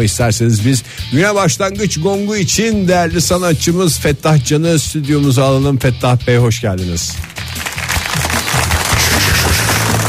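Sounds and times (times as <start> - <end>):
speech: 0.0 - 7.5
small group clapping hands: 7.1 - 10.0.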